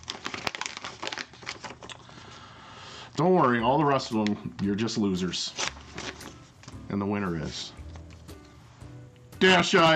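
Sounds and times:
official award envelope torn open at an awards show: 0.0 - 2.0, 5.5 - 6.8
speech: 3.2 - 5.6, 6.9 - 7.8, 9.4 - 9.9.

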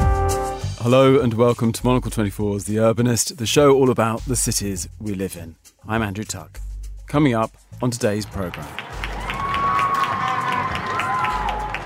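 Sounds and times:
speech: 0.8 - 8.9
clapping from balconies for frontline workers: 8.1 - 11.8.

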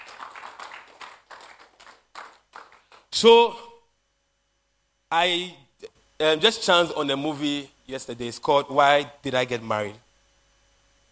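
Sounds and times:
audience clapping hands: 0.0 - 3.1
speech: 3.2 - 3.6, 5.1 - 5.6, 6.2 - 10.0.

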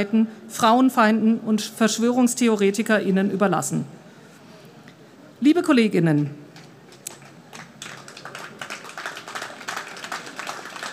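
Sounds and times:
speech: 0.0 - 4.0, 5.4 - 6.4
audience clapping: 6.9 - 10.9.

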